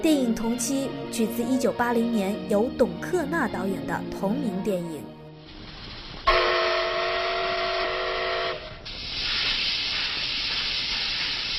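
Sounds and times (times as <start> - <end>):
speech: 0.0 - 5.1
steam train whistle at Nanjing station: 6.3 - 8.8
steam train hissing steam: 8.6 - 11.5.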